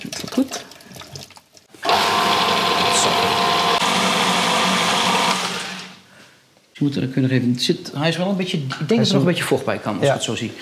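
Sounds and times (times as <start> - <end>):
blender running: 1.8 - 6.0
speech: 6.8 - 10.6.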